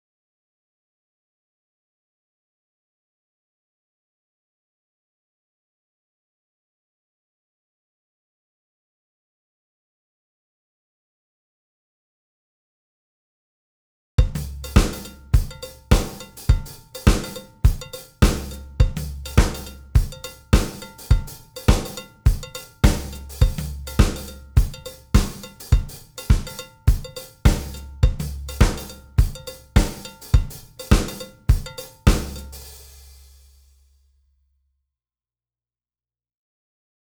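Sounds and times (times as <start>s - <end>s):
drums: 14.2s - 33.7s.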